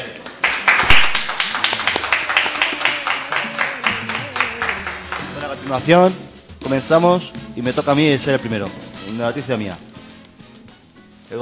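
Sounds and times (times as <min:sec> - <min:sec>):
group applauding with steady rhythmic clapping: 0:00.0 - 0:10.8
faint murmuring voices: 0:02.0 - 0:05.9
speech: 0:05.7 - 0:09.9, 0:11.3 - 0:11.4.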